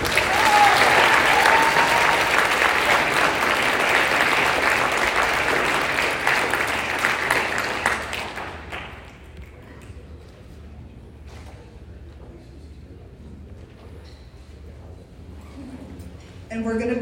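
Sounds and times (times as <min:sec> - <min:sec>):
audience applause: 0:00.0 - 0:10.0.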